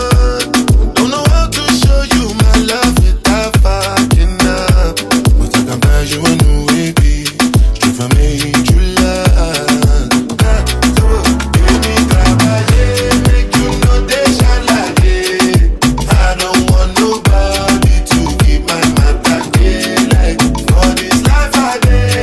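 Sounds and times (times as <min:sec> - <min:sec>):
afro drum beat: 0:00.0 - 0:22.2.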